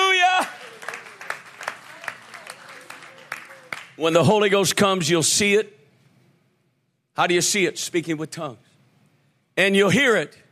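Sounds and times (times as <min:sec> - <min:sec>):
audience clapping hands: 0:00.0 - 0:04.3
speech: 0:04.0 - 0:05.8, 0:07.2 - 0:08.7, 0:09.6 - 0:10.4.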